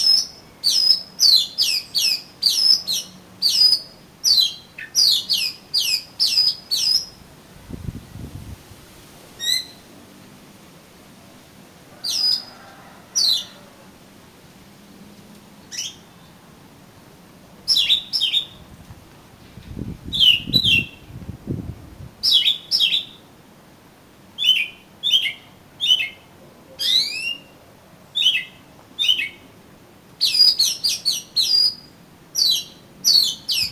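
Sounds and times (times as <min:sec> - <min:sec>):
Oriental magpie-robin whistling: 0:00.0 - 0:07.2, 0:09.4 - 0:09.8, 0:12.0 - 0:12.5, 0:15.7 - 0:16.1, 0:17.7 - 0:18.6, 0:20.1 - 0:21.0, 0:22.2 - 0:23.2, 0:24.4 - 0:26.2, 0:26.8 - 0:29.4, 0:30.2 - 0:33.7.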